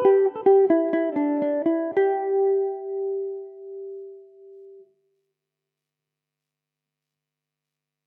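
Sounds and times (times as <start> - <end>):
Irish mandolin in G major: 0.0 - 4.9.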